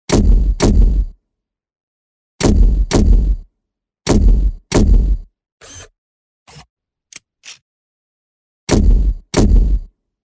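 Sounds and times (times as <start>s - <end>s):
robotic footsteps: 0.1s - 1.1s, 2.4s - 3.4s, 4.1s - 5.3s, 8.7s - 9.9s.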